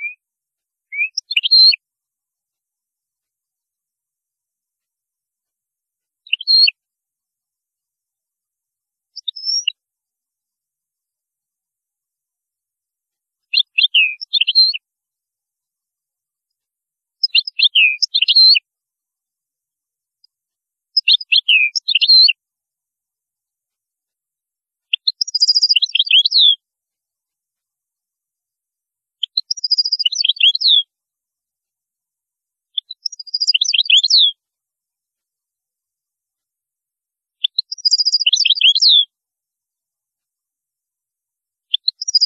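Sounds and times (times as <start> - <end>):
European goldfinch twittering song: 0.9 - 1.8, 6.3 - 6.7, 9.2 - 9.8, 13.6 - 14.8, 17.2 - 18.6, 21.0 - 22.3, 24.9 - 26.6, 29.2 - 30.8, 32.8 - 34.4, 37.4 - 39.1, 41.7 - 42.2.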